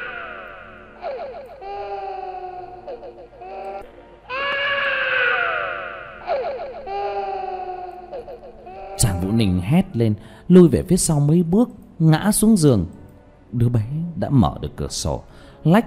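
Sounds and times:
young boy crying eerily in the rain: 0.0s - 9.2s
speech: 9.2s - 15.8s.

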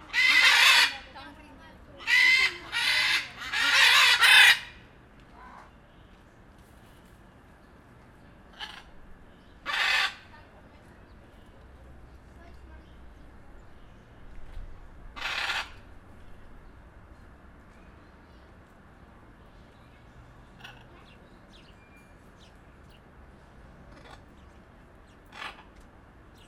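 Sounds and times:
blue-and-yellow macaw giving harsh raspy squawks at the Jardin des Plantes, Paris: 0.0s - 1.2s, 2.0s - 4.8s, 9.6s - 10.3s, 15.2s - 15.8s.

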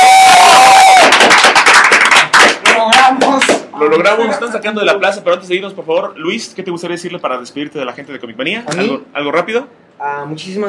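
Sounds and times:
audience applause: 0.0s - 3.6s
speech: 4.0s - 10.6s.

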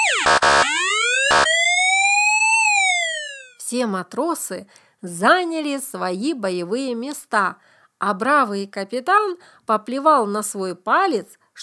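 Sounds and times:
boatswain's pipe sounding battle alarm: 0.0s - 3.6s
speech: 3.7s - 11.6s.

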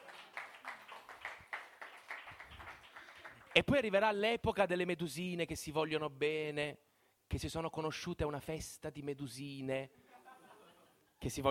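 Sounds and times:
applause: 0.0s - 3.8s
speech: 3.6s - 10.0s, 11.2s - 11.4s.

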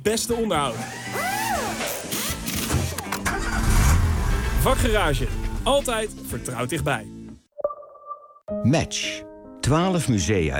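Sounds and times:
speech: 0.0s - 1.2s, 4.6s - 7.1s, 8.6s - 10.5s
car engine starting: 2.4s - 6.2s.

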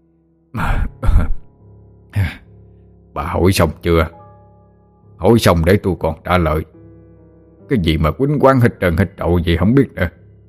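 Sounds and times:
old man coughing: 0.6s - 1.5s
speech: 3.2s - 4.2s, 5.2s - 6.8s, 7.7s - 10.2s.

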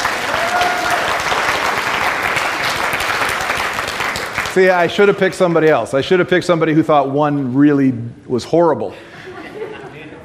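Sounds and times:
audience applause: 0.0s - 5.2s
speech: 4.6s - 9.1s
laughter: 8.9s - 10.2s.

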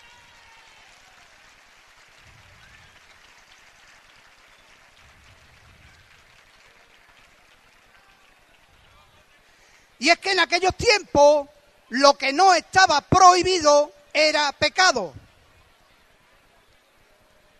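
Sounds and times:
audience applause: 0.0s - 9.4s
low murmuring voices: 2.2s - 10.0s, 15.2s - 17.5s
speech: 10.0s - 15.2s.

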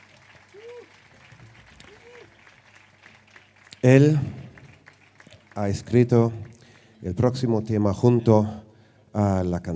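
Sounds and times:
audience applauding at a music festival concert: 0.0s - 7.1s
speech: 3.8s - 4.4s, 5.6s - 8.6s, 9.2s - 9.7s.

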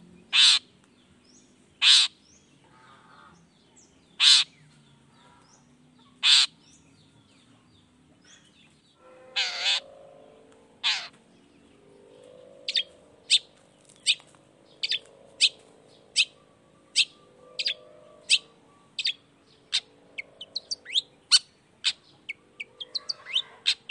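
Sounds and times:
long-tailed shrike calling: 0.3s - 0.7s, 1.8s - 2.2s, 4.2s - 4.6s, 6.2s - 6.6s, 9.3s - 11.2s, 11.9s - 23.8s.

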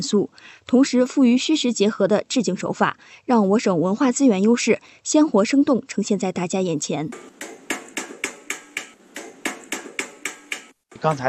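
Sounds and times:
speech: 0.0s - 7.6s, 11.0s - 11.2s
hammer striking iron plate for relief: 7.1s - 11.2s.

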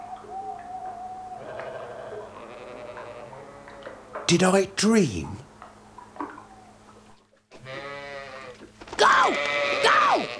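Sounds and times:
low steady hum: 0.0s - 10.3s
sheep bleating: 1.4s - 4.1s, 7.6s - 10.3s
speech: 4.3s - 5.4s.

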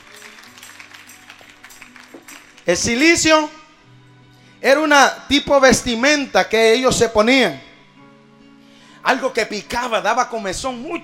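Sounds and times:
congregation clapping in church: 0.0s - 3.2s
speech: 2.7s - 3.6s, 4.6s - 7.7s, 9.0s - 11.0s.

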